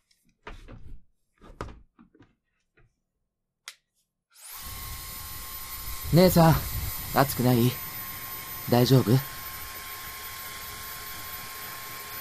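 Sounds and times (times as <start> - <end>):
hair dryer blowing: 4.4 - 12.2
speech: 6.1 - 7.8, 8.7 - 9.3.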